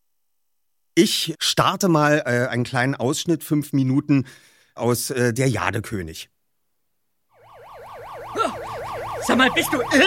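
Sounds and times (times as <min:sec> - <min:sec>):
speech: 0:01.0 - 0:06.3, 0:09.2 - 0:10.0
burglar alarm going off: 0:07.3 - 0:10.0.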